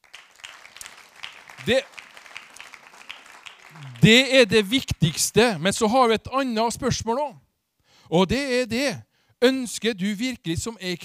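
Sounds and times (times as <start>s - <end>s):
applause: 0.0s - 5.0s
speech: 1.6s - 2.0s, 3.8s - 7.4s, 8.1s - 11.0s.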